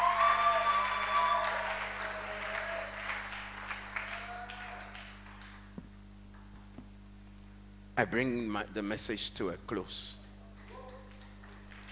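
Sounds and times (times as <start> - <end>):
audience applause: 0.0 - 5.7, 10.6 - 11.9
speech: 8.0 - 10.2.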